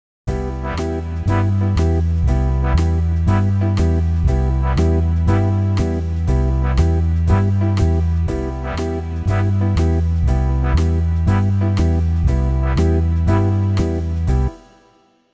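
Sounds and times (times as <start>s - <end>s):
bass: 0.3s - 14.6s.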